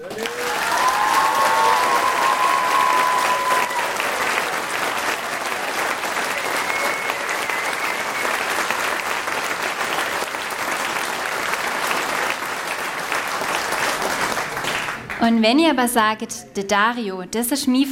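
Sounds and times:
audience clapping: 0.0 - 15.3
high whistle or cheer: 0.4 - 4.4, 6.1 - 8.8
speech: 15.3 - 17.9.

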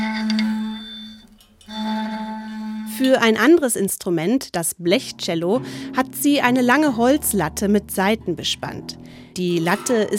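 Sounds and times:
bow drawn over screws on a round wooden plate instrument: 1.7 - 3.6, 4.2 - 10.1
speech: 3.0 - 10.1.

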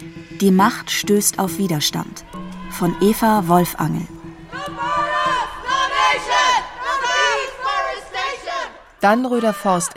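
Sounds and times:
speech: 0.4 - 4.2, 9.0 - 9.9
young protesters shouting angrily down from trees: 2.2 - 3.5, 4.2 - 9.9.

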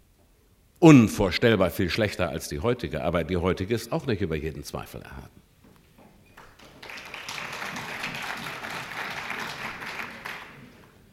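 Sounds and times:
speech: 0.8 - 5.4
audience applause: 6.4 - 11.0.

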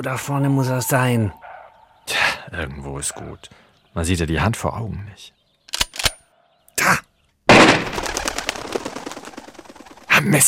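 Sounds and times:
speech: 0.0 - 1.4, 2.1 - 5.4, 10.2 - 10.4
gunshot fired while hunting in thick fog: 7.5 - 8.0.

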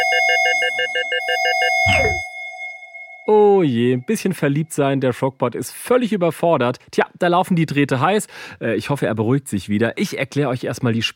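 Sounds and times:
alarm ringing: 0.0 - 4.1
speech: 3.3 - 11.1.

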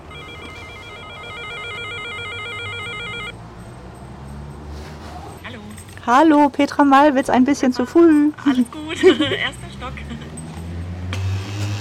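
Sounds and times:
doorbell ringing: 0.0 - 3.4
speech: 6.1 - 10.2.

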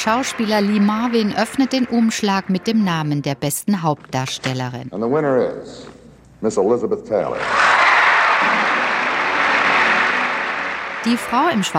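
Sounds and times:
large audience applause at award ceremony: 0.0 - 2.2, 7.6 - 11.7
speech: 0.0 - 7.8, 11.0 - 11.7.

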